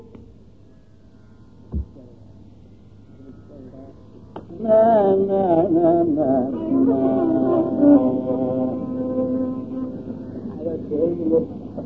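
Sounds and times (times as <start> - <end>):
Carnatic swarakalpana improvised singing in Kannada: 3.2 - 11.8.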